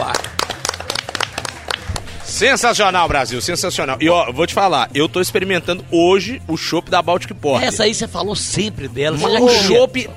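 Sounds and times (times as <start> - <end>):
applause: 0.0 - 2.7
speech: 2.4 - 10.1.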